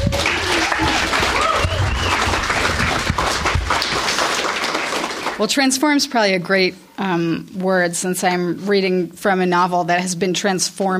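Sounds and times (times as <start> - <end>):
audience applause greeting a reader at a short story workshop event: 0.0 - 5.4
speech: 5.4 - 10.9.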